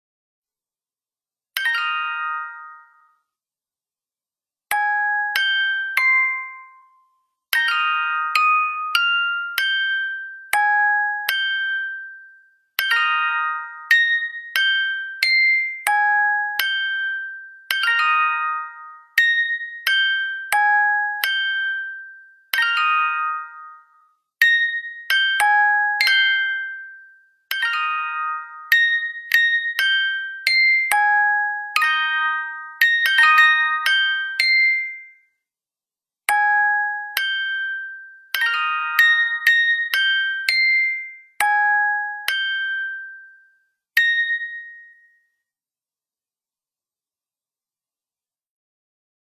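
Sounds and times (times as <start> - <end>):
music box: 1.5 - 3.3, 4.7 - 35.4, 36.3 - 45.4.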